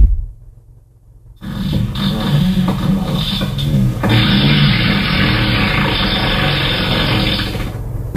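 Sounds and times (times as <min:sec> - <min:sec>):
fart sound effect played by smart speaker: 0:01.4 - 0:08.1.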